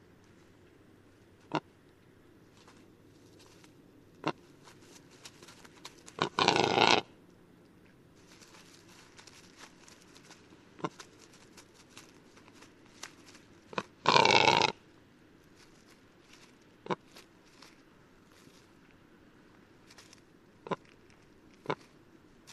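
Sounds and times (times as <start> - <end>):
rackelhahn croak: 6.2 - 7.2, 13.7 - 14.8.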